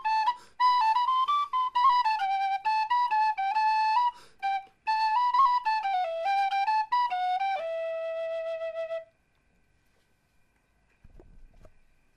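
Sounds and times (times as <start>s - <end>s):
gavotte: 0.0s - 9.1s.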